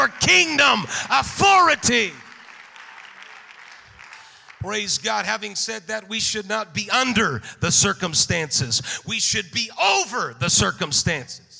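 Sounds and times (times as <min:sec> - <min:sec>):
speech: 0:00.0 - 0:02.2, 0:04.6 - 0:11.5
audience clapping hands: 0:00.0 - 0:05.6.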